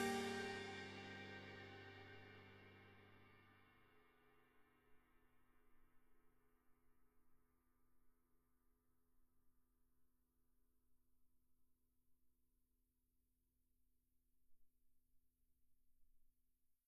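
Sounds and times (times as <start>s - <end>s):
ride cymbal: 0.0s - 2.7s.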